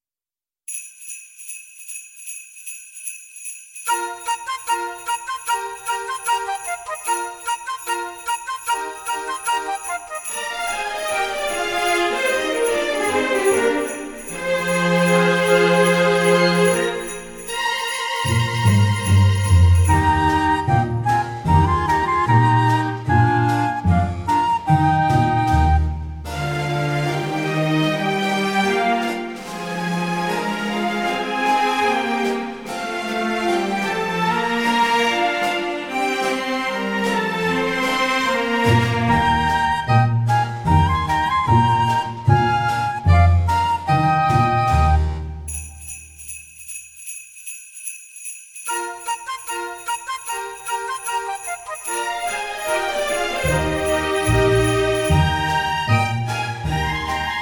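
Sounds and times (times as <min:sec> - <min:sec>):
German Christmas song with three verses: 0:00.7 - 0:57.4.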